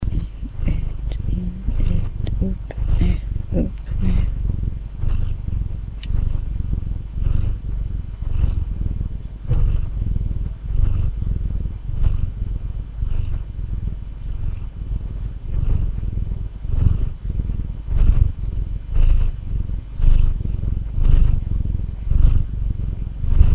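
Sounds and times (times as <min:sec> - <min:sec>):
domestic cat giving a loud low rumbling purr: 0:00.0 - 0:23.5.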